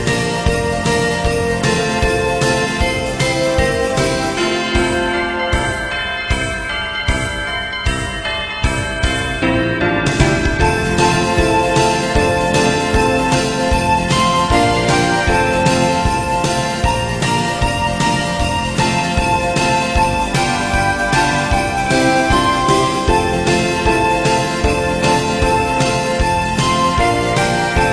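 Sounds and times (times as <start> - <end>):
instrumental christmas song: 0.0 - 27.9.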